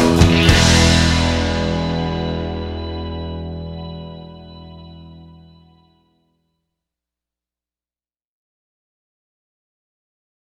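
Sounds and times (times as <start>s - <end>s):
E blues backing track without guitar: 0.0s - 5.7s.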